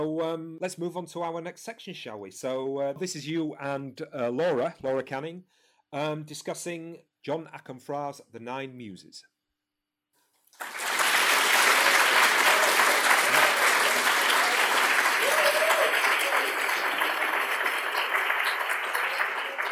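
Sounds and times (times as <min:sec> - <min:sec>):
speech: 0:00.0 - 0:09.3
audience applause: 0:10.6 - 0:19.6
faint whoops: 0:11.9 - 0:16.8.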